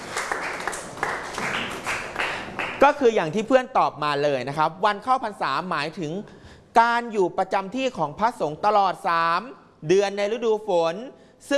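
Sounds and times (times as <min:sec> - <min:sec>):
classmates clapping in a classroom: 0:00.0 - 0:03.0
speech: 0:02.8 - 0:11.5.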